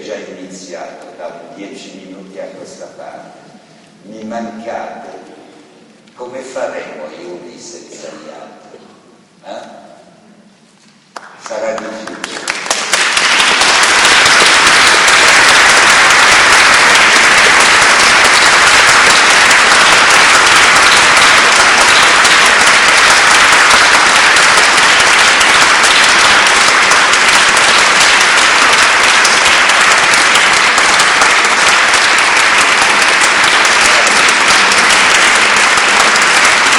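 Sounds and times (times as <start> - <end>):
speech: 0.1 - 5.4, 6.2 - 8.8, 9.4 - 9.8, 11.5 - 12.4
long audience applause: 11.2 - 36.7.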